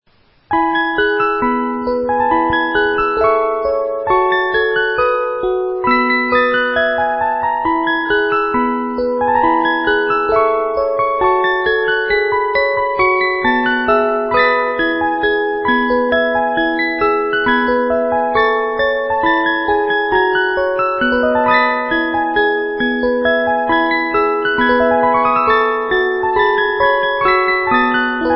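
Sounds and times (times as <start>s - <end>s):
Christmas melody of 30 notes: 0.5s - 28.3s.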